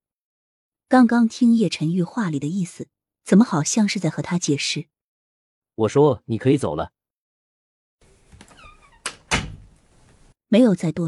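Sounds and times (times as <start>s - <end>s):
speech: 0.9s - 5.0s, 5.8s - 7.0s, 10.5s - 11.0s
door slammed shut: 8.4s - 9.8s.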